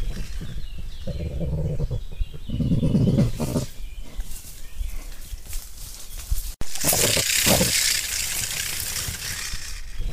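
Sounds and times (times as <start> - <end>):
crested porcupine grunting: 0.0 - 3.8, 6.7 - 7.8.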